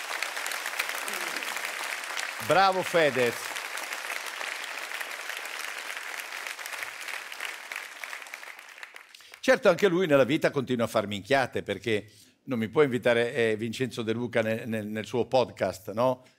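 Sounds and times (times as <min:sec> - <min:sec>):
applause: 0:00.0 - 0:10.0
speech: 0:02.4 - 0:03.5, 0:09.5 - 0:16.3.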